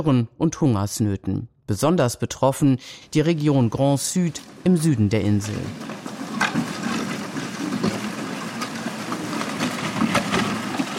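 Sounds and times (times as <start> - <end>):
speech: 0.0 - 6.7
ox carts rumbling over unpaved roads: 3.3 - 10.9.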